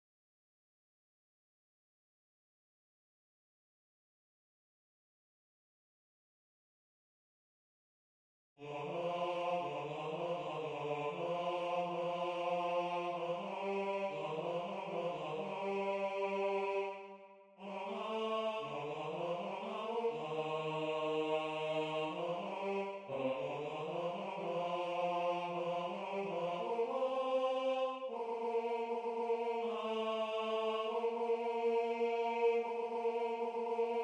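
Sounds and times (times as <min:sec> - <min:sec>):
tenor singing: 0:08.6 - 0:34.0.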